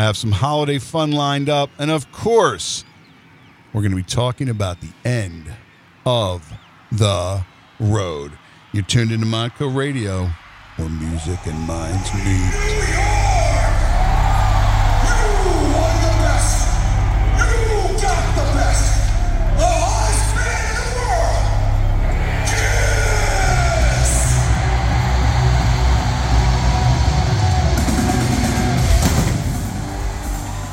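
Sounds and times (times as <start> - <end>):
speech: 0.0 - 2.9, 3.7 - 13.1
wailing siren-like tones from live concert intro on phone recording: 7.0 - 30.7
droning low rumble: 10.5 - 30.7.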